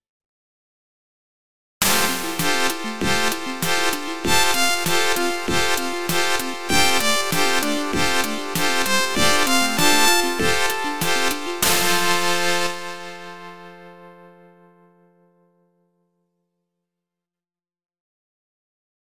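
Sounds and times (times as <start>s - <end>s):
jingle: 1.8s - 13.5s.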